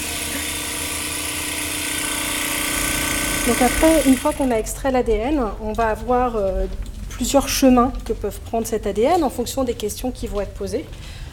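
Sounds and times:
tissue lyser bead mill grinding samples: 0:00.0 - 0:04.6
speech: 0:03.4 - 0:11.2.

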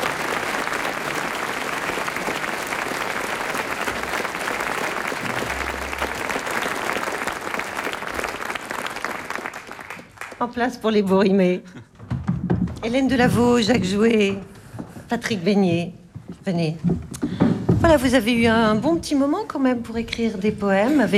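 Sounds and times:
audience applause: 0:00.0 - 0:10.5
speech: 0:10.4 - 0:11.8, 0:12.8 - 0:14.5, 0:15.1 - 0:17.0, 0:17.8 - 0:21.1.

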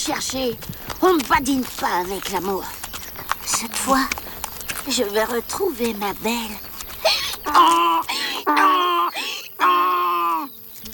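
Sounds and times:
speech: 0:00.0 - 0:02.8, 0:03.5 - 0:04.2, 0:04.8 - 0:06.7, 0:07.5 - 0:09.0
violins imitating a donkey's hee-haw bray: 0:07.0 - 0:10.5.

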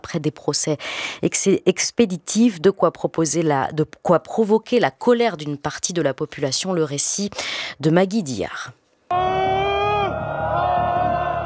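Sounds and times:
speech: 0:00.1 - 0:09.4
protesting crowd shouting on Ali Khani square in Isfahan: 0:09.1 - 0:11.4.

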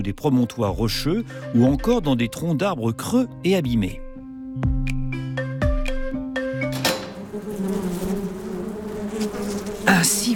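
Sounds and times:
speech: 0:00.0 - 0:04.0, 0:04.6 - 0:04.8, 0:09.9 - 0:10.3
wasp buzzing: 0:05.8 - 0:10.3.

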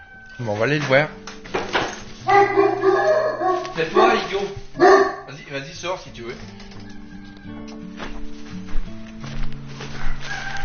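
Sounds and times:
rooster crowing: 0:00.0 - 0:00.5, 0:02.3 - 0:04.2, 0:06.8 - 0:07.8, 0:09.9 - 0:10.6
footstep-like noises: 0:00.3 - 0:05.3, 0:06.3 - 0:10.6
speech: 0:00.4 - 0:01.3, 0:03.8 - 0:06.7.

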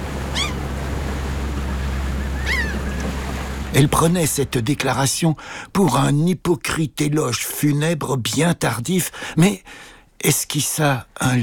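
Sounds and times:
waves breaking on a beach: 0:00.0 - 0:05.7
speech: 0:03.7 - 0:11.4.

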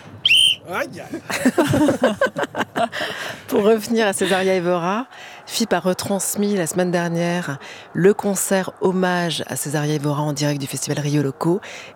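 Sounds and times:
whistle blown: 0:00.2 - 0:00.6
speech: 0:00.7 - 0:11.9
laughter: 0:01.0 - 0:04.5.

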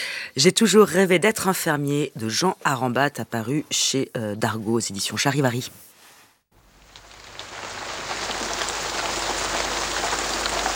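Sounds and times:
speech: 0:00.4 - 0:05.9
steady rain pouring: 0:06.6 - 0:10.7.

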